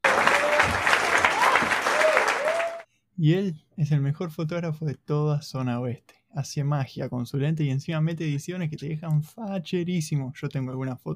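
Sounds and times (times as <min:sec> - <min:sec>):
crowd clapping: 0:00.0 - 0:02.9
faint whoops or voices: 0:00.0 - 0:02.9
speech: 0:03.2 - 0:11.1.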